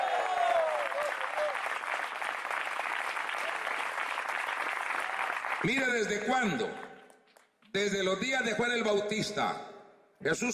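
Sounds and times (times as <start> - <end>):
audience applause: 0.0 - 6.8
speech: 5.6 - 6.8, 7.7 - 10.5.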